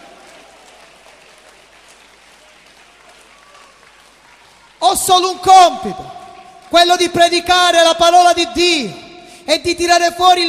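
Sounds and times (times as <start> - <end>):
audience applauding: 0.0 - 7.5
speech: 4.8 - 10.4.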